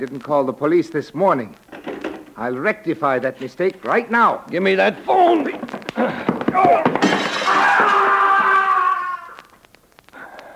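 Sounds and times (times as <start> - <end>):
speech: 0.0 - 1.7, 2.4 - 7.4
person crashing through a glass window: 4.9 - 9.3.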